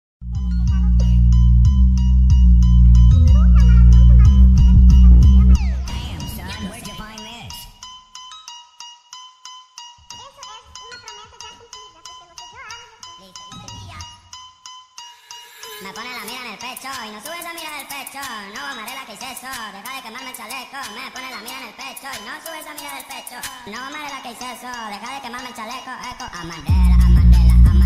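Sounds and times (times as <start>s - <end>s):
bass boosted remix music: 0.2s - 7.7s, 26.6s - 27.8s.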